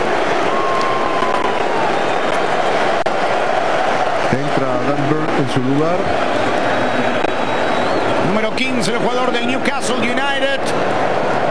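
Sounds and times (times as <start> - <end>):
stadium crowd ovation for departing player in Miami: 0.0 - 11.4
speech: 4.3 - 6.4, 8.3 - 11.4.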